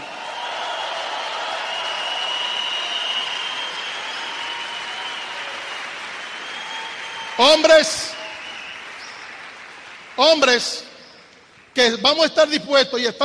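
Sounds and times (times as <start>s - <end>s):
large audience applause: 0.0s - 10.7s
speech: 7.4s - 8.1s, 10.2s - 10.9s, 11.8s - 13.2s.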